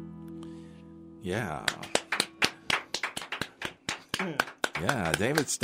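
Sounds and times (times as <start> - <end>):
speech: 1.2 - 1.9, 4.2 - 5.6
single person clapping in a studio: 1.6 - 5.6.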